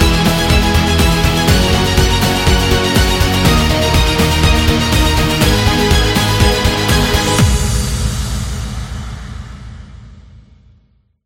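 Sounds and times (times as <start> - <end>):
upbeat motivational music: 0.0 - 8.7.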